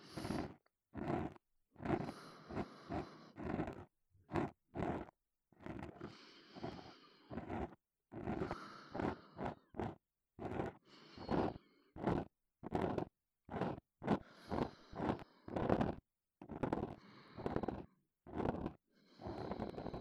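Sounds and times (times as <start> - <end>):
breathing in the left ear: 0.0 - 3.9, 5.9 - 9.8, 10.5 - 12.9, 14.0 - 16.0, 16.8 - 19.9
ear cleaning sounds in the left ear: 0.0 - 19.9.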